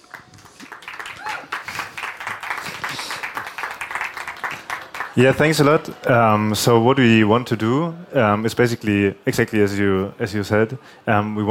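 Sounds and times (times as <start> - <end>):
audience applause: 0.0 - 6.5
speech: 5.2 - 11.4.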